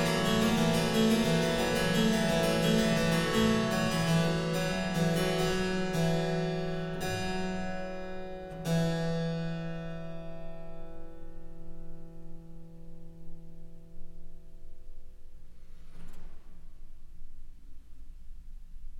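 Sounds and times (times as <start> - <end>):
harpsichord: 0.0 - 11.1.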